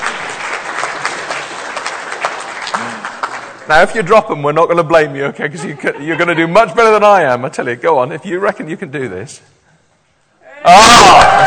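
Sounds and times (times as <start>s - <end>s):
audience clapping: 0.0s - 4.1s, 10.9s - 11.4s
speech: 3.7s - 9.6s, 10.6s - 11.4s
laughter: 5.4s - 6.8s.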